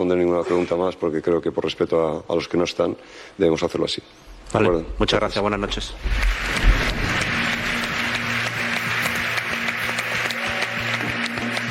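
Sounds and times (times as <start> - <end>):
speech: 0.0 - 6.8
stadium crowd applause: 6.0 - 11.7.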